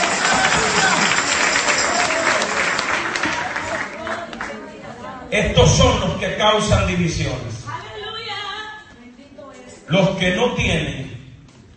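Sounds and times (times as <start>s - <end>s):
audience applause: 0.0s - 4.7s
speech: 5.4s - 7.6s, 9.9s - 11.1s.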